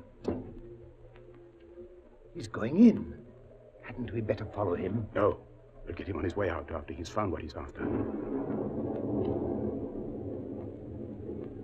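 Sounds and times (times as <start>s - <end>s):
speech: 2.4s - 3.2s, 4.0s - 8.9s
distant thunder rumbling: 7.5s - 11.6s.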